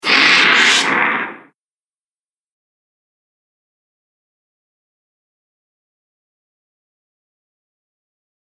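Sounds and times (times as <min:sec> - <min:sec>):
monster dragging a demon: 0:00.0 - 0:01.5.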